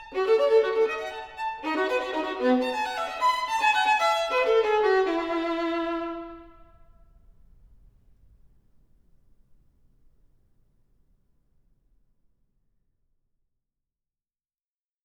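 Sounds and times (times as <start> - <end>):
solo violin gigue: 0.0 - 6.9.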